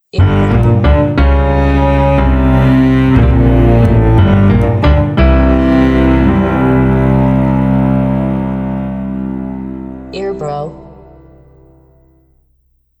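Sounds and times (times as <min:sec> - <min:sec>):
detective story music: 0:00.1 - 0:12.3.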